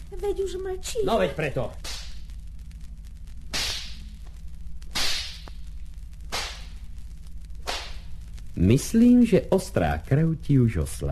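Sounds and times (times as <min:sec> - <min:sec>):
low hum: 0:00.0 - 0:11.1
speech: 0:00.2 - 0:01.9, 0:08.6 - 0:11.1
whip lashes during a spanking: 0:01.8 - 0:02.2, 0:03.5 - 0:04.0, 0:04.9 - 0:05.5, 0:06.3 - 0:06.7, 0:07.6 - 0:08.0.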